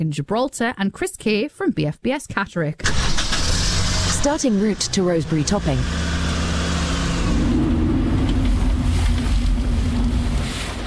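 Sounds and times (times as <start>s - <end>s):
speech: 0.0s - 3.1s, 4.2s - 6.0s
car arriving and parking: 2.8s - 10.2s.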